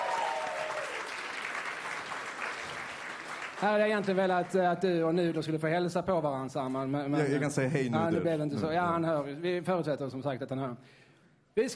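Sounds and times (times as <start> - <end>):
audience applause: 0.0 - 4.6
speech: 3.6 - 11.0, 11.6 - 11.7.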